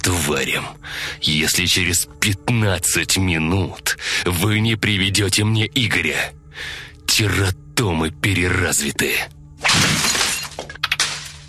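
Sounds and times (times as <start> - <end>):
speech: 0.3 - 10.0
computer monitor being smashed: 9.6 - 11.4
pieces of monitor clattering: 9.7 - 11.4.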